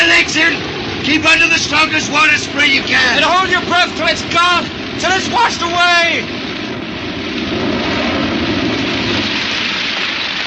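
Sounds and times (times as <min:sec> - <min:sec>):
rocket engine roaring at launch: 0:00.0 - 0:10.4
speech: 0:01.1 - 0:06.4.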